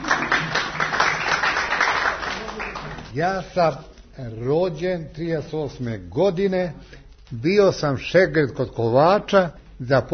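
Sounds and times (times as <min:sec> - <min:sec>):
audience applause as a man is introduced to speak: 0:00.0 - 0:03.2
speech: 0:03.2 - 0:10.1.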